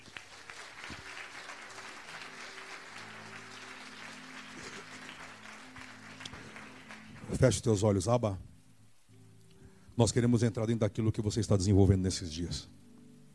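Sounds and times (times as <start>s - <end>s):
audience applause: 0.0s - 7.7s
speech: 7.4s - 8.5s, 10.0s - 12.8s.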